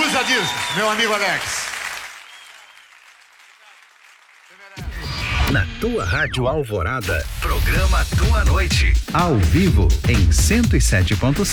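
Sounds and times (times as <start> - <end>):
applause: 0.0 - 4.8
speech: 0.3 - 1.6, 5.5 - 11.5.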